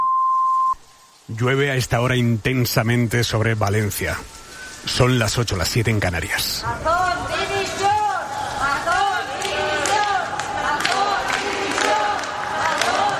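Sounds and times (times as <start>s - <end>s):
speech: 1.3s - 7.7s
crowd shouting at a funeral in Valencia: 6.9s - 13.1s.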